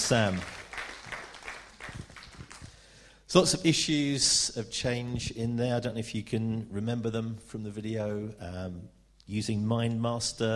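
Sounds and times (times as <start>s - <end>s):
round of applause: 0.0s - 2.8s
speech: 0.1s - 0.6s, 3.3s - 10.5s.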